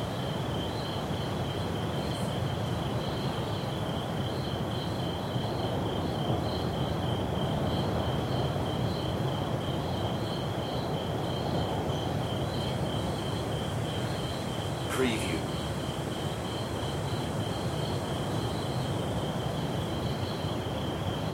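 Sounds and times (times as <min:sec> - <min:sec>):
rainforest ambience: 0:00.0 - 0:21.3
ocean waves: 0:12.5 - 0:17.6.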